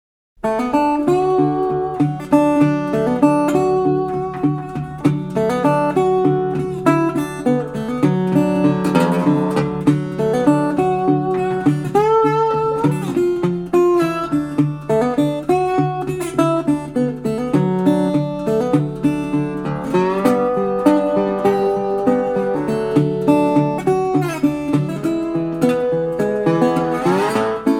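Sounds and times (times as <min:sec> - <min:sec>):
bottleneck guitar rag: 0:00.4 - 0:27.7.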